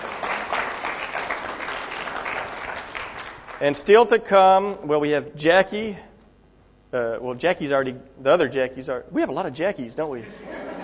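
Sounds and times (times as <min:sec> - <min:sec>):
audience applause: 0:00.0 - 0:03.6
speech: 0:03.6 - 0:06.1, 0:06.9 - 0:10.6
laughter: 0:10.2 - 0:10.8.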